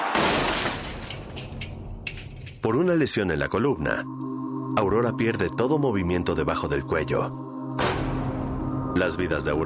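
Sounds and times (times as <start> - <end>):
car crashing into a retaining wall: 0.1 - 1.1
speech: 2.7 - 7.9, 8.9 - 9.6.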